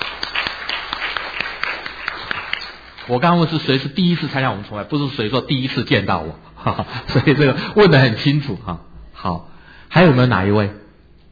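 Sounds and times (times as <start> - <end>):
audience clapping in welcome: 0.0 - 3.5
speech: 3.1 - 10.8.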